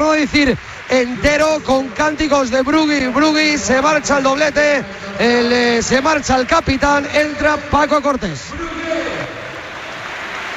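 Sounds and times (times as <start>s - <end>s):
stadium crowd applauding departing player: 0.0s - 10.5s
speech: 0.2s - 8.8s.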